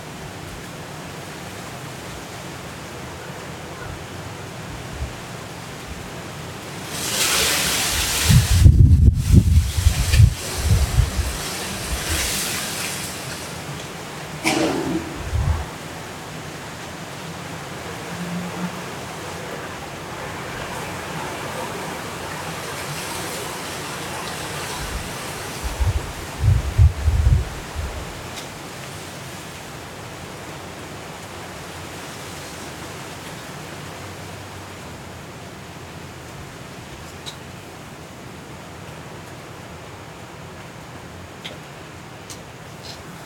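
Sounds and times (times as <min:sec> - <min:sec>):
wind and rain of Hurricane Kay at midnight in Los Cabos: 0:00.0 - 0:43.2
strong gusts and rumbling buffets: 0:14.4 - 0:15.9.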